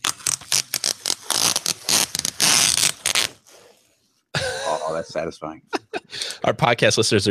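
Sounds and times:
something being peeled off: 0.0 - 3.5
laughter: 4.4 - 6.9
speech: 4.9 - 5.8, 6.4 - 7.2.

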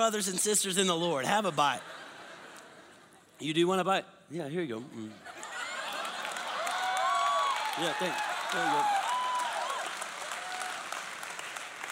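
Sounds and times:
speech: 0.0 - 2.1, 3.4 - 5.3, 7.8 - 9.0
laughter: 1.4 - 3.5, 5.0 - 7.0
church audience applauding: 5.4 - 11.9.

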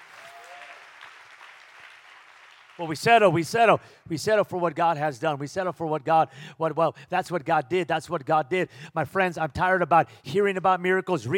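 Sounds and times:
audience clapping hands: 0.0 - 3.4
speech: 2.8 - 11.3.

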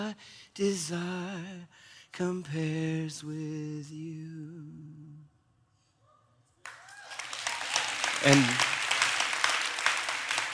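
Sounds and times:
speech: 0.1 - 1.5, 2.2 - 4.7, 8.2 - 8.5
audience clapping: 6.6 - 10.5.

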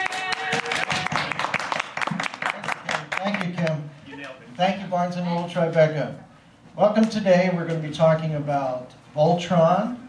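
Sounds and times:
audience applause at a bookstore panel discussion: 0.0 - 3.6
speech: 4.6 - 10.0.

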